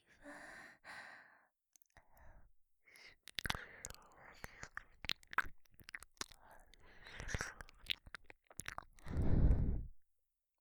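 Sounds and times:
ear licking by two people: 2.9 - 10.0.

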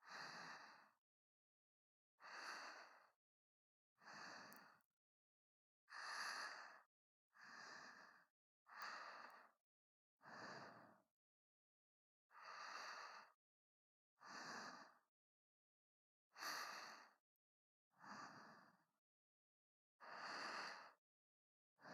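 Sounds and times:
person breathing in sleep: 0.0 - 1.0, 2.2 - 3.2, 4.0 - 4.8, 5.9 - 9.6, 12.3 - 13.4, 14.2 - 15.1, 16.4 - 17.2, 18.0 - 18.9, 20.0 - 21.0.

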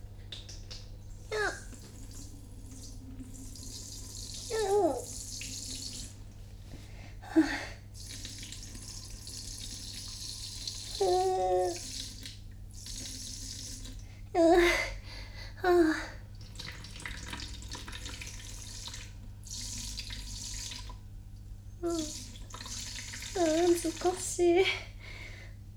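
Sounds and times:
urinating into a washbasin indoors in binaural recording: 0.0 - 25.6.

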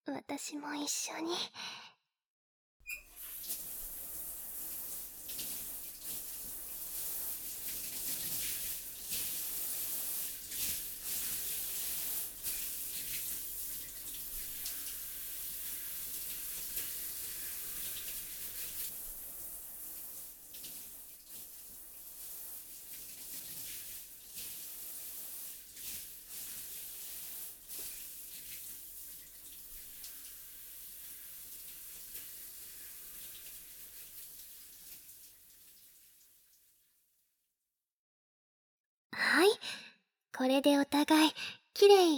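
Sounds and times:
speech: 0.1 - 1.9, 40.4 - 42.1
water rinsing off soap foam: 3.0 - 36.7.

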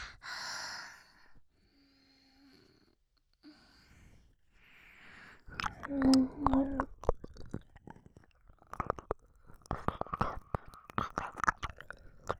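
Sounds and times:
binaural ear licking: 5.5 - 12.3.

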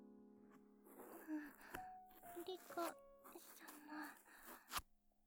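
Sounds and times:
ASMR ear cleaning sounds: 0.9 - 4.8.

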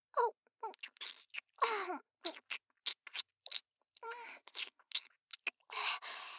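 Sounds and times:
wet licking and slurping of something sweet and melting: 0.7 - 1.6, 2.2 - 6.2.

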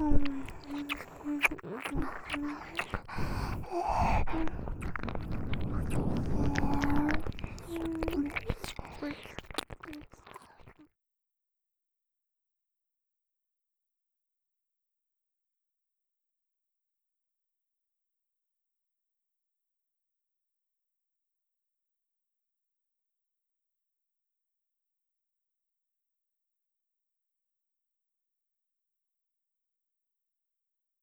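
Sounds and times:
intense ear licking ASMR: 0.0 - 10.8.

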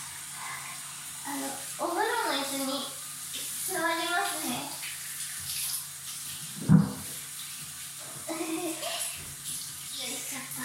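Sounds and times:
shower water running: 0.0 - 10.6
dull knock: 6.6 - 7.1.

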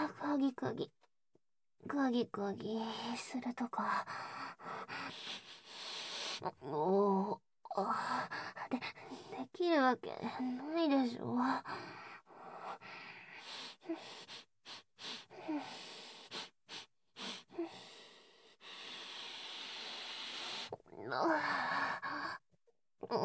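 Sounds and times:
speech: 0.4 - 1.0, 1.8 - 4.7, 6.4 - 12.1, 21.0 - 22.2, 23.0 - 23.2
deep breathing: 11.8 - 20.8.

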